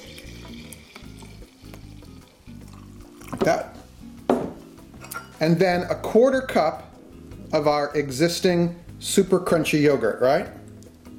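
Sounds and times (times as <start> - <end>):
milk poured into a pot: 0.0 - 3.8
speech: 3.4 - 3.8, 5.4 - 6.8, 7.5 - 10.6.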